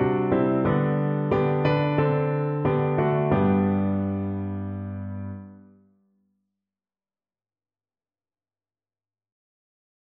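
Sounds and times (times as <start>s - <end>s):
piano: 0.0s - 5.9s.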